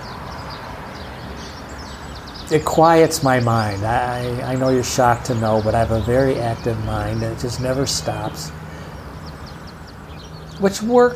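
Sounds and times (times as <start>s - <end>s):
birds singing: 0.0s - 11.1s
wind: 0.0s - 11.1s
speech: 2.5s - 8.6s, 10.6s - 11.1s.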